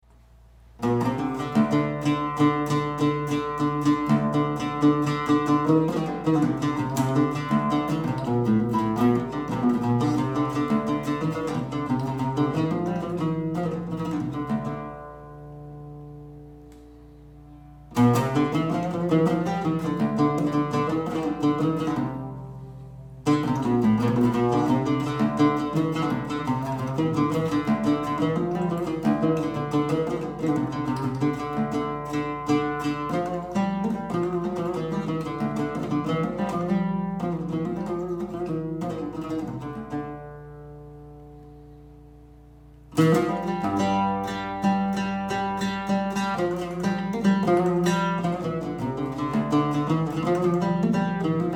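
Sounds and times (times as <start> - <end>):
oud taqasim improvisation: 0.0 - 51.5.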